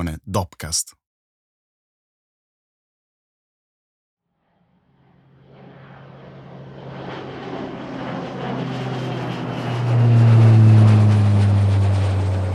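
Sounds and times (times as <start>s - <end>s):
speech: 0.0s - 1.0s
Airbus 321 airliner flying: 4.9s - 12.5s.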